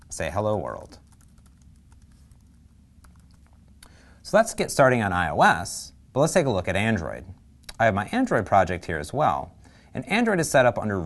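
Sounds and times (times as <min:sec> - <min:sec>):
code being typed on a computer keyboard: 0:00.0 - 0:03.6
speech: 0:00.2 - 0:01.0, 0:04.3 - 0:11.0.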